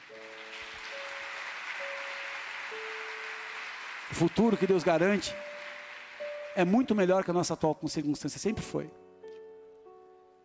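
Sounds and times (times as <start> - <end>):
audience applauding: 0.0 - 7.4
speech: 4.1 - 5.5, 6.6 - 9.0.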